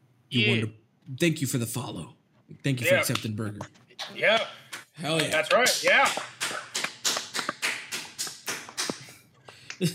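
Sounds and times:
speech: 0.3s - 6.3s, 9.8s - 9.9s
golf clap: 4.4s - 9.8s.

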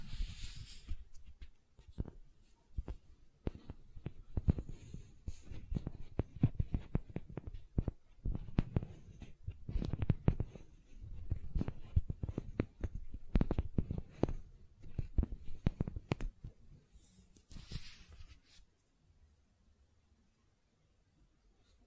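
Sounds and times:
silicone tapping and squishing clicks: 1.0s - 16.6s.

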